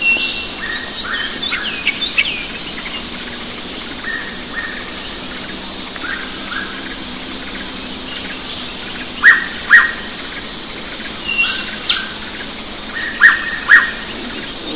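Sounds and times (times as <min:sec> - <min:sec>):
hooded pitta whistling calls: 0:00.0 - 0:03.0, 0:04.0 - 0:07.0, 0:08.0 - 0:10.5, 0:11.2 - 0:12.3, 0:12.9 - 0:14.7.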